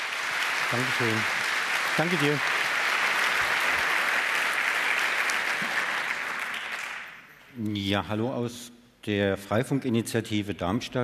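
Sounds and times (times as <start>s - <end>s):
audience applause: 0.0s - 7.4s
speech: 0.7s - 1.4s, 2.0s - 2.6s, 7.6s - 11.0s.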